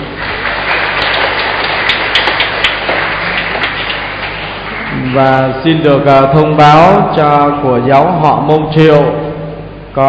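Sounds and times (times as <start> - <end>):
audience applauding loudly: 0.0 - 5.8
speech: 5.2 - 9.2.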